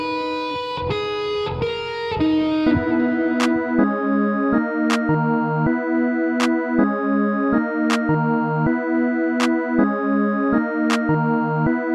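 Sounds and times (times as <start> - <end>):
guitar type beat: 0.0 - 8.8, 9.4 - 11.8.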